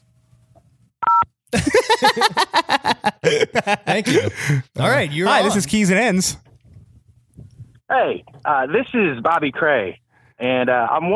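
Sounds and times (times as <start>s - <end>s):
telephone keypad tone: 1.0s - 1.2s
laughter: 1.5s - 5.8s
speech: 1.6s - 2.5s, 3.2s - 6.4s, 7.9s - 11.1s.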